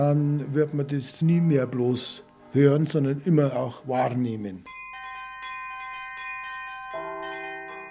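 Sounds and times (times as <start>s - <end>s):
speech: 0.0s - 4.8s
church bells ringing: 4.7s - 7.8s.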